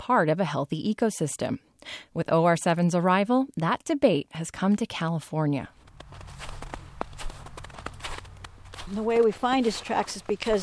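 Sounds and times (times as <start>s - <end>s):
speech: 0.1s - 6.4s, 8.9s - 10.6s
footsteps walking through a quiet pine forest outside Susanville: 5.7s - 10.6s.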